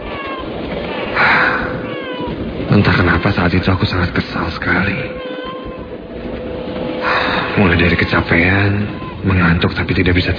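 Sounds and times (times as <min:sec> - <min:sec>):
baby crying: 0:00.0 - 0:02.7, 0:04.4 - 0:06.3, 0:07.0 - 0:09.6
speech: 0:02.8 - 0:05.3, 0:07.6 - 0:10.3.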